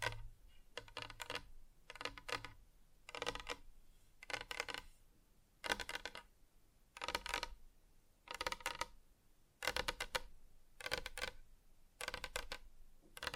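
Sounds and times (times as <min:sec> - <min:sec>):
fingertips tapping on different surfaces: 0:00.0 - 0:05.0, 0:05.6 - 0:06.3, 0:08.3 - 0:09.0, 0:09.6 - 0:11.4, 0:12.0 - 0:12.6.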